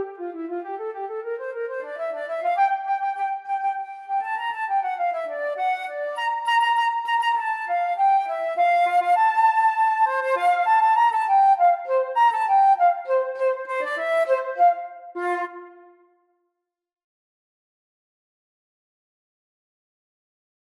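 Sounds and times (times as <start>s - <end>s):
flute duet: 0.0s - 16.2s.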